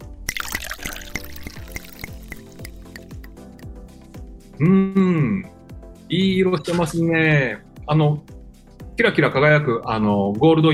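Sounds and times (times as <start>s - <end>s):
golden-yellow drink from a resealable bottle pouring into a glass: 0.2s - 3.6s
speech: 4.6s - 5.5s, 6.1s - 8.3s, 9.0s - 10.7s.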